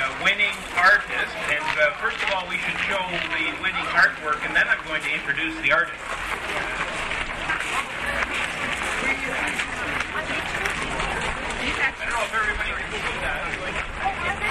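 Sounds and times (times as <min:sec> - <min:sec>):
murmur of crowd voices: 0:00.0 - 0:14.4
speech: 0:00.8 - 0:06.9
audience clapping: 0:06.2 - 0:14.0.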